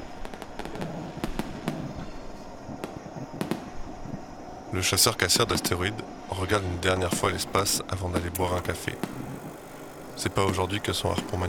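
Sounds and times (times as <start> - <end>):
fireworks exploding: 0.0 - 4.1, 7.0 - 11.4
speech: 4.7 - 9.2, 10.2 - 11.4.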